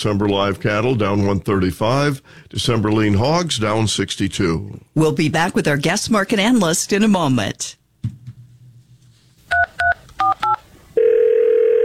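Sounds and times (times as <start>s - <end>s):
speech: 0.0s - 7.8s
touch-tone beeps of telephone dialing: 9.5s - 11.8s.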